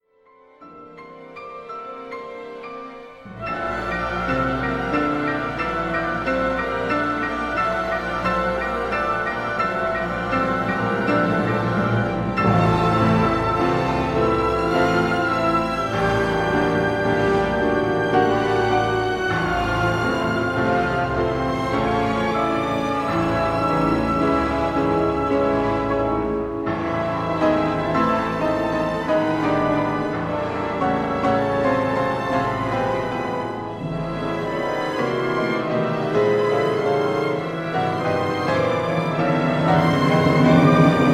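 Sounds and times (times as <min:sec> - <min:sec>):
piano concerto andante movement: 0:00.0 - 0:41.1.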